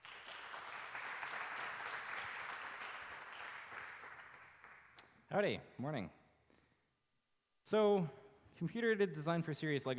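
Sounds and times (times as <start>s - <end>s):
audience applause welcoming a speaker: 0.0s - 4.9s
speech: 5.3s - 6.2s, 7.7s - 9.9s.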